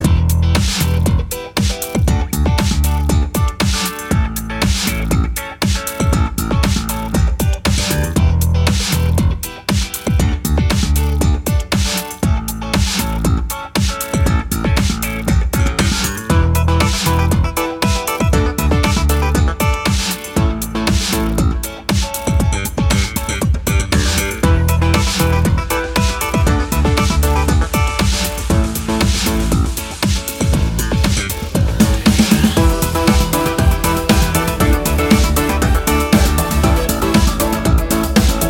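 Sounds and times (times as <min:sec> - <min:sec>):
slap bass funk: 0:00.0 - 0:38.4.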